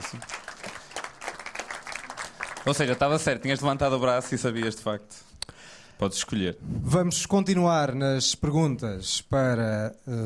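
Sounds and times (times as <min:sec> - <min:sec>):
audience applause: 0:00.0 - 0:04.7
speech: 0:02.6 - 0:05.3, 0:06.0 - 0:10.2.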